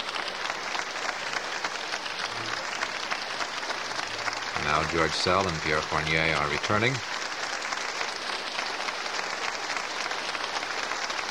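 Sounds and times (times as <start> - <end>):
audience applause at a classical concert: 0.0 - 11.3
speech: 4.7 - 7.2.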